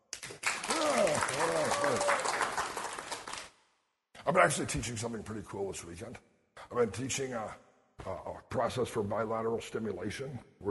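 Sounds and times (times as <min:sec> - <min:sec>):
crowd applause: 0:00.2 - 0:03.5
whoops and cheering voices: 0:00.6 - 0:02.5
speech: 0:04.3 - 0:10.6.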